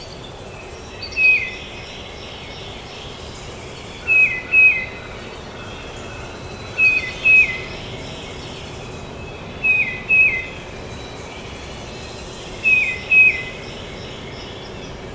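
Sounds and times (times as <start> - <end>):
tufted titmouse song: 4.0 - 5.2, 6.7 - 7.9, 9.6 - 10.7, 12.6 - 14.2.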